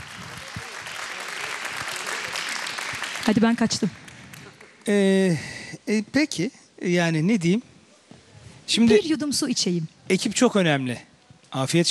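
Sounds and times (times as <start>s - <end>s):
audience applause for a singer and orchestra: 0.0s - 4.8s
speech: 3.3s - 4.0s, 4.8s - 7.7s, 8.7s - 11.8s.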